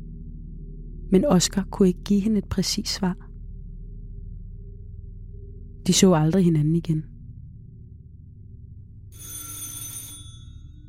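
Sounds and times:
speech: 1.1s - 3.2s, 5.9s - 7.1s
doorbell ringing: 9.2s - 10.8s.

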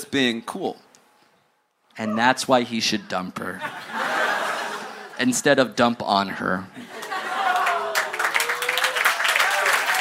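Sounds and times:
speech: 0.1s - 0.9s, 2.0s - 4.0s, 5.2s - 7.0s
laughter: 3.5s - 5.2s, 6.8s - 8.3s
clapping: 7.0s - 9.9s.

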